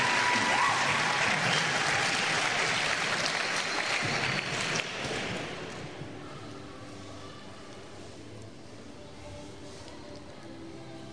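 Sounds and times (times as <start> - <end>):
large group clapping: 0.0 - 5.3.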